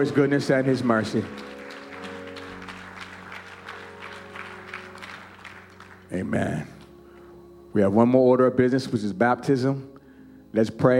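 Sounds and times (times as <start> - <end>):
speech: 0.0 - 1.6, 6.1 - 6.7, 7.7 - 9.9, 10.5 - 10.9
audience clapping: 0.0 - 7.0.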